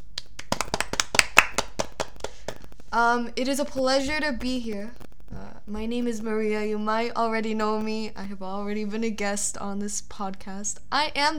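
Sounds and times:
hand clapping: 0.0s - 2.9s
speech: 2.9s - 5.0s, 5.7s - 11.3s.

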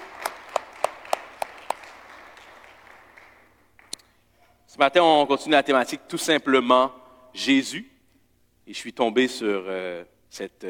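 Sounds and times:
audience applauding: 0.0s - 4.0s
soft hiss: 0.0s - 10.6s
speech: 4.8s - 7.9s, 8.7s - 10.6s.

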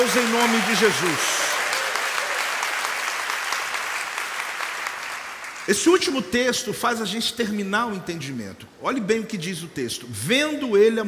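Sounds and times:
speech: 0.0s - 1.4s, 5.7s - 11.0s
crowd applause: 0.0s - 5.7s.

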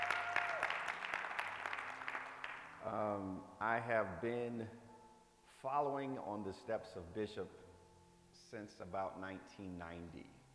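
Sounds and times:
audience clapping: 0.0s - 2.8s
speech: 2.8s - 4.9s, 5.6s - 7.6s, 8.4s - 10.4s.

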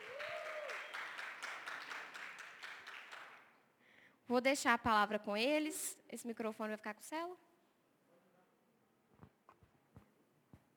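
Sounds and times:
audience applause: 0.0s - 3.4s
speech: 4.3s - 7.5s.

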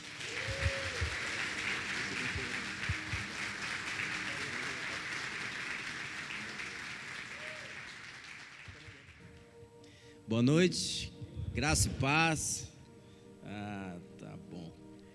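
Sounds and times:
audience applause: 0.0s - 9.4s
speech: 10.3s - 12.7s.

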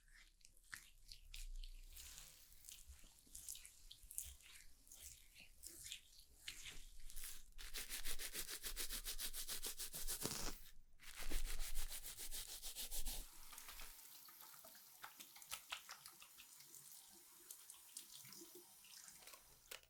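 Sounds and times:
hair being washed with rubbing and scrubbing: 0.8s - 14.0s
running water: 13.2s - 19.7s.

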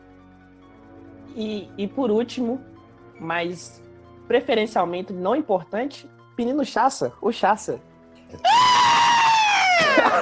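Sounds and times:
speech: 1.3s - 8.7s
man screaming: 8.4s - 10.2s.

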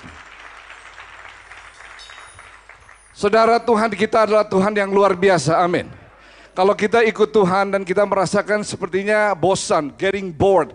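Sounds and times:
crowd applauding: 0.0s - 5.6s
speech: 3.2s - 6.0s, 6.6s - 10.7s.

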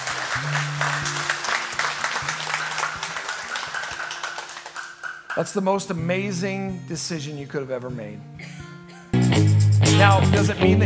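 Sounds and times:
audience applause: 0.0s - 5.5s
speech: 0.4s - 1.1s, 5.4s - 8.5s, 10.0s - 10.8s.

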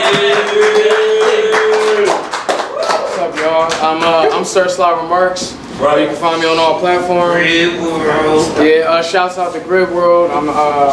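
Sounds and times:
audience applause: 0.0s - 4.3s
speech: 3.8s - 10.9s.

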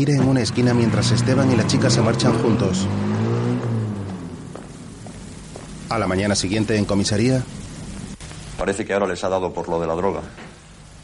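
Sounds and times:
speech: 0.0s - 3.3s, 5.9s - 7.6s, 8.6s - 10.4s
car engine driving off: 0.0s - 8.2s.

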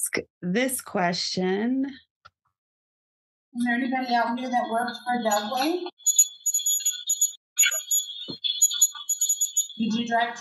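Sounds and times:
speech: 0.2s - 2.1s, 3.6s - 6.0s, 9.8s - 10.3s
truck temperature gauge alarm beeping: 5.1s - 10.3s.

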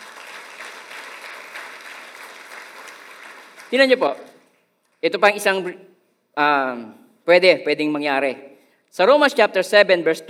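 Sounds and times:
church congregation applauding in praise of the Lord during a sermon: 0.0s - 4.6s
speech: 3.7s - 4.3s, 5.0s - 10.2s.

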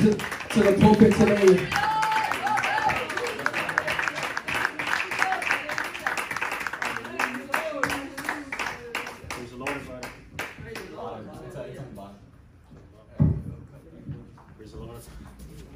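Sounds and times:
speech: 0.0s - 1.9s
audience clapping hands: 0.0s - 11.0s.

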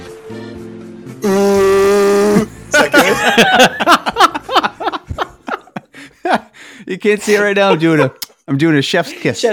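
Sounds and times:
voice imitating a ship's foghorn: 1.2s - 2.5s
laughter: 2.6s - 6.6s
speech: 3.4s - 4.0s, 7.0s - 9.5s.

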